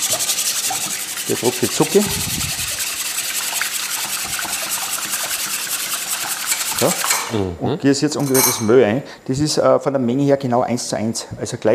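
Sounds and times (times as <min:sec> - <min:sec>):
wire whisk beating egg and milk in a bowl for batter: 0:00.0 - 0:07.2
speech: 0:01.3 - 0:02.6, 0:06.8 - 0:11.7.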